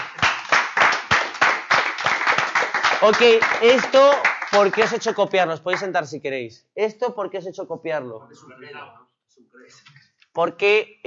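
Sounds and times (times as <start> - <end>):
group of people applauding: 0.0 - 6.0
speech: 3.0 - 11.0.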